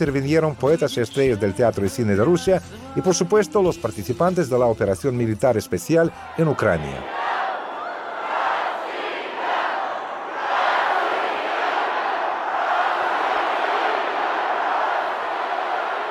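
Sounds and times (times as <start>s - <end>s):
speech: 0.0s - 7.2s
crowd chanting: 6.3s - 16.0s.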